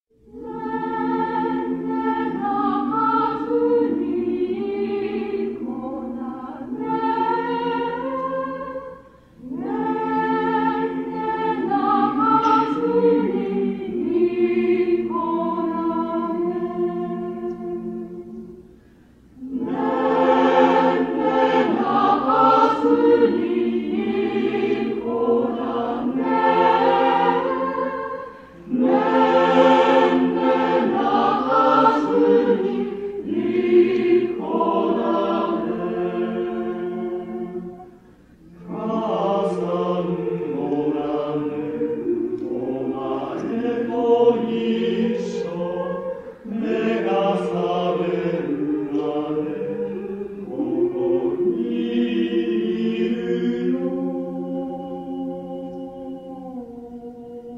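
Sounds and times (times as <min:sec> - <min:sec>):
South African lullaby: 0:00.1 - 0:57.5.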